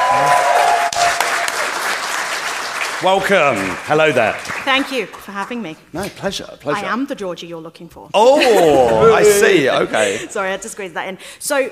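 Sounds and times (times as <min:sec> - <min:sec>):
live convention crowd applause at Star Wars Celebration 2023: 0:00.0 - 0:05.2
speech: 0:00.1 - 0:00.4, 0:03.0 - 0:11.7.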